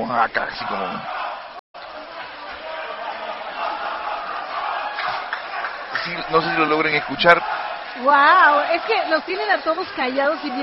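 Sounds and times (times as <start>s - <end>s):
speech: 0.0s - 1.2s, 6.1s - 10.6s
group shouting a ritual team chant: 0.6s - 10.6s.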